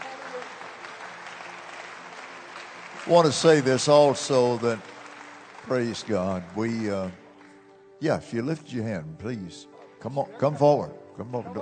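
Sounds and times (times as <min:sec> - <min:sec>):
church congregation applauding during a service: 0:00.0 - 0:07.8
speech: 0:03.1 - 0:05.0, 0:05.7 - 0:07.2, 0:08.0 - 0:11.6.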